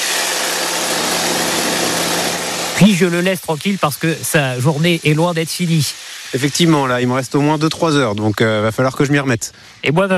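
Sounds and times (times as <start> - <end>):
hedge trimmer engine running: 0.0 - 8.0
speech: 2.8 - 10.1.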